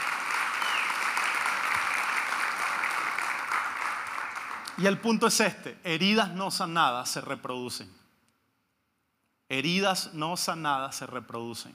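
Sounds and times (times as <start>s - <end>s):
audience applauding: 0.0s - 4.8s
speech: 4.8s - 8.0s, 9.5s - 11.7s.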